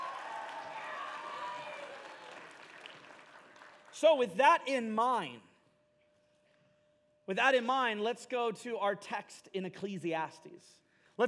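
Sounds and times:
audience applause: 0:00.0 - 0:03.9
speech: 0:04.0 - 0:05.5, 0:07.3 - 0:11.2.

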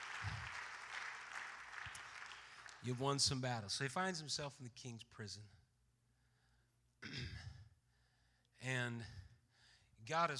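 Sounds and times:
audience clapping hands: 0:00.0 - 0:03.2
speech: 0:02.8 - 0:05.6, 0:08.6 - 0:09.2, 0:10.0 - 0:10.3.

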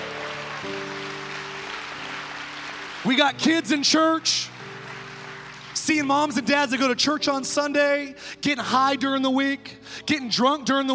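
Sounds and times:
audience clapping: 0:00.0 - 0:06.9
speech: 0:03.0 - 0:04.5, 0:05.9 - 0:10.9.

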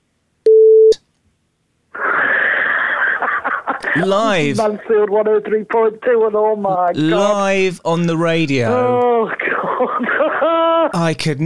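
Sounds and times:
censor beep over a word: 0:00.5 - 0:01.0
laughter: 0:02.0 - 0:05.5, 0:08.7 - 0:11.0
speech: 0:04.0 - 0:11.4.

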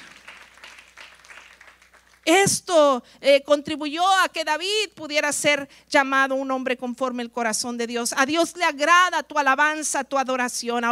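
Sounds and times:
audience applause: 0:00.0 - 0:02.2
speech: 0:02.3 - 0:10.9.

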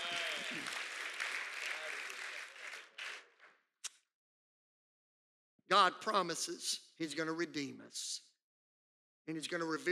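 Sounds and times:
audience clapping: 0:00.0 - 0:03.7
speech: 0:05.7 - 0:08.3, 0:09.3 - 0:09.8.

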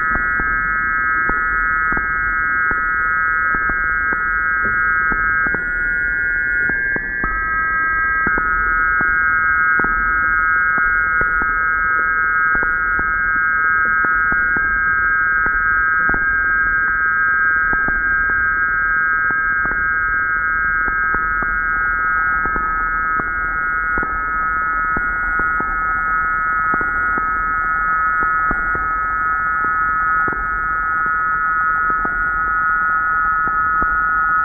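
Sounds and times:
EMF flutters, whistles, tones and crackling from a Sorte Muld Instruments EMF detector: 0:00.0 - 0:34.4.

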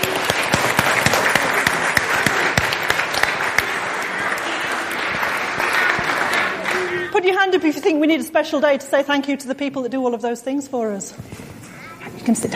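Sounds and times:
audience clapping: 0:00.0 - 0:07.8
speech: 0:07.5 - 0:11.5, 0:12.2 - 0:12.5.

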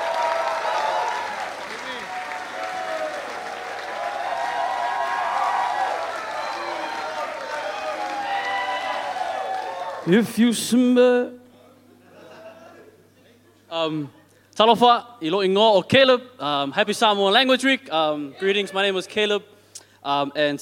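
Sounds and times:
cheers and voices in the crowd: 0:00.0 - 0:10.1
audience applause: 0:00.0 - 0:10.2
speech: 0:10.1 - 0:11.4, 0:13.8 - 0:20.5.

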